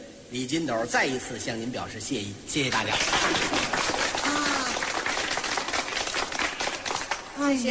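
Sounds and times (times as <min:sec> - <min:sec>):
speech: 0:00.3 - 0:03.7, 0:07.4 - 0:07.6
audience applause: 0:02.8 - 0:07.4.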